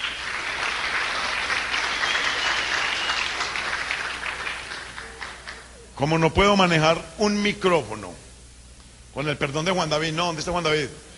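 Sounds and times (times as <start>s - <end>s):
audience applause: 0.0s - 5.7s
speech: 6.0s - 8.3s, 9.2s - 11.1s.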